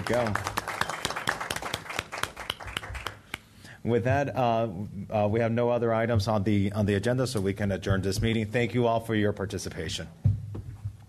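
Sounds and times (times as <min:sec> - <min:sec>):
audience applause: 0:00.0 - 0:03.3
speech: 0:00.1 - 0:00.5, 0:03.8 - 0:10.2.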